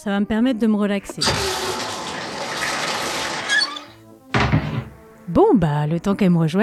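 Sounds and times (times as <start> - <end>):
speech: 0.0 - 1.7, 5.3 - 6.6
video game watery wash effect from Ranma 1/2 on the Super Famicom: 1.2 - 4.0.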